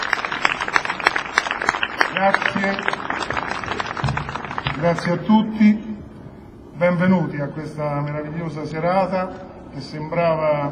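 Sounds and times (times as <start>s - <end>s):
audience applause: 0.0s - 5.1s
speech: 2.2s - 3.8s, 4.8s - 5.9s, 6.8s - 10.7s.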